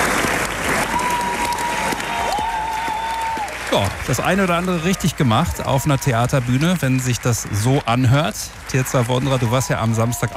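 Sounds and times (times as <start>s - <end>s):
opera premiere audience applause: 0.0s - 10.3s
speech: 3.7s - 10.3s.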